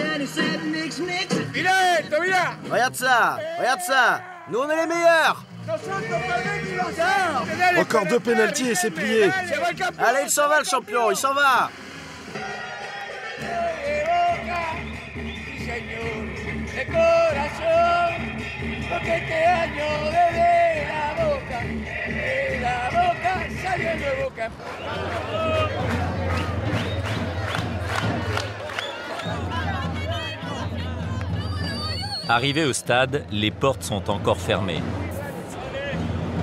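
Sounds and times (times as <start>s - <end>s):
football supporters shouting and chanting outside a stadium: 0.0s - 36.4s
speech: 0.3s - 12.6s, 18.9s - 20.7s, 32.3s - 35.1s
rhythmic clapping or pounding: 12.9s - 16.2s, 24.6s - 31.4s.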